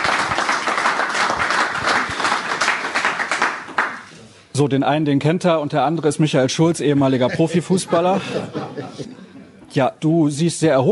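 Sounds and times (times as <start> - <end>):
crowd applause: 0.0 - 4.0
speech: 4.6 - 10.9
laughter: 7.0 - 9.7.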